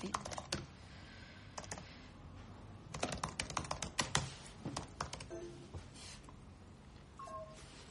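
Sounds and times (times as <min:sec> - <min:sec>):
typing on a laptop keyboard at a desk: 0:00.0 - 0:00.7, 0:01.6 - 0:01.9, 0:02.9 - 0:05.3.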